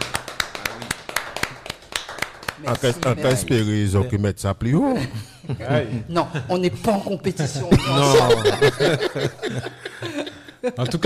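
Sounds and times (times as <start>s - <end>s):
hand clapping from a small group: 0.0s - 3.6s
speech: 2.6s - 11.0s
laughter: 5.0s - 11.0s.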